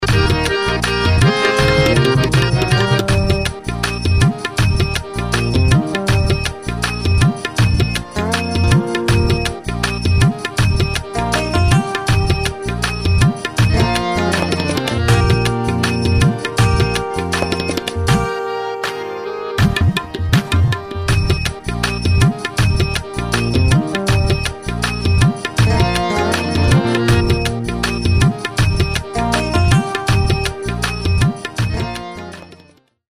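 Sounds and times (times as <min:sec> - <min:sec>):
karaoke song: 0:00.0 - 0:32.5.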